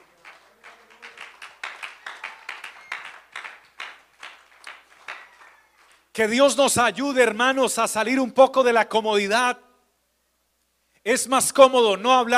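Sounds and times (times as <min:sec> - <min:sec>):
audience applause: 0:00.0 - 0:06.0
speech: 0:06.2 - 0:09.6, 0:11.0 - 0:12.3.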